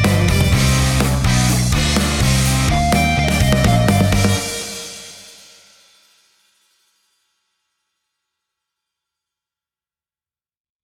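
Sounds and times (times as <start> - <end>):
song intro and chorus: 0.0 - 5.5.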